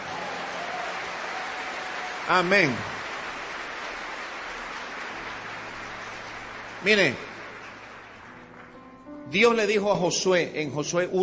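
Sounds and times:
audience applause: 0:00.0 - 0:08.9
speech: 0:02.3 - 0:03.0, 0:06.8 - 0:07.3, 0:09.3 - 0:11.2.

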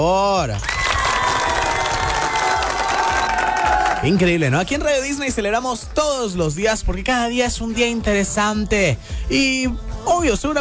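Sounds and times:
speech: 0:00.0 - 0:00.8, 0:04.0 - 0:10.6
applause: 0:00.6 - 0:06.3.

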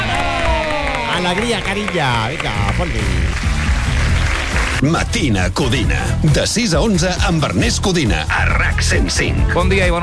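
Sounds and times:
cheering crowd sound effect on a Catalan morning radio show: 0:00.0 - 0:04.8
speech: 0:01.2 - 0:03.9, 0:04.8 - 0:10.0.

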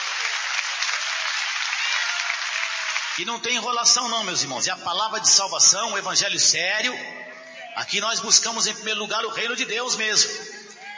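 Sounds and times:
church congregation clapping to praise God: 0:00.0 - 0:04.2
speech: 0:03.2 - 0:10.5.

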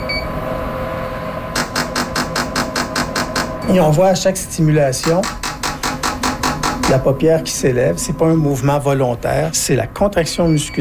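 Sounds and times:
beeping signal announcing stimulation: 0:00.0 - 0:00.3, 0:10.5 - 0:10.8
low machine hum: 0:00.0 - 0:10.8
speech: 0:03.7 - 0:05.4, 0:06.9 - 0:10.8.

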